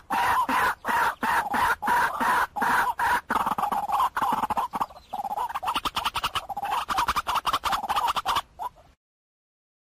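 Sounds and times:
white-breasted waterhen calling: 0:00.0 - 0:09.0.

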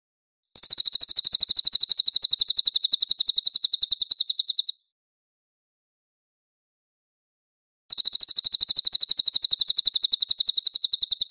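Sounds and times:
cililin trilling: 0:00.6 - 0:04.8, 0:07.9 - 0:11.2.

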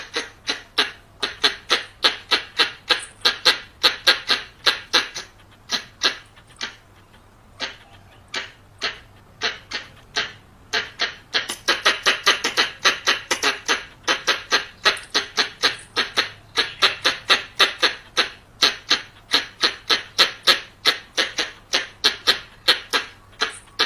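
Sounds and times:
variable squirrel chucking calls: 0:00.0 - 0:23.8.

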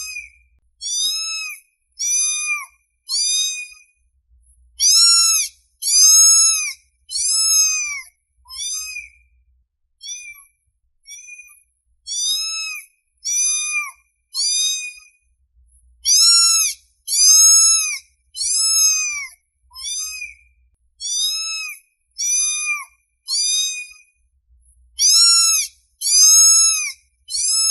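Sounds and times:
domestic cat meowing: 0:00.0 - 0:03.8, 0:04.8 - 0:09.1, 0:10.0 - 0:10.5, 0:12.1 - 0:15.1, 0:16.0 - 0:20.4, 0:21.0 - 0:24.0, 0:25.0 - 0:27.6.

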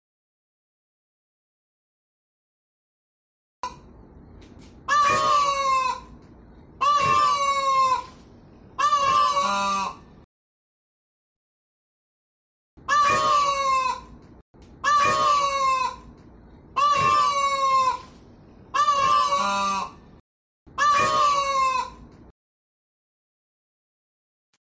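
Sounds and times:
faint steady hum: 0:03.6 - 0:10.2, 0:13.4 - 0:22.3
peafowl calling: 0:04.6 - 0:06.2, 0:06.8 - 0:10.1, 0:12.8 - 0:14.2, 0:14.8 - 0:20.0, 0:20.7 - 0:22.1.

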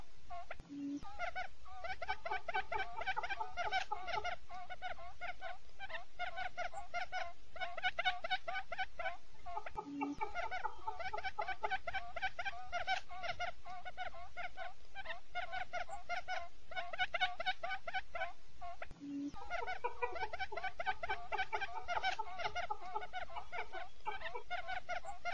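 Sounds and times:
quail clucking in chorus: 0:00.0 - 0:25.3.

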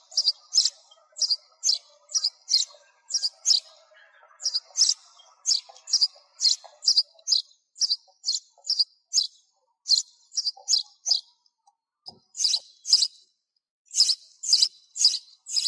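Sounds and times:
sparrow chirping: 0:00.0 - 0:15.6.

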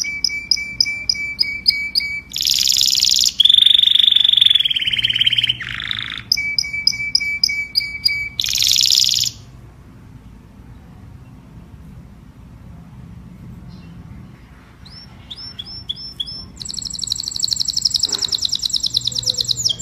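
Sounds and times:
domestic canary singing: 0:00.0 - 0:09.6, 0:13.6 - 0:19.8.

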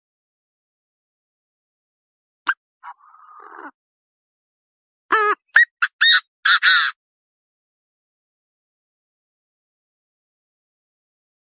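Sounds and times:
partridge calling: 0:05.1 - 0:07.0.

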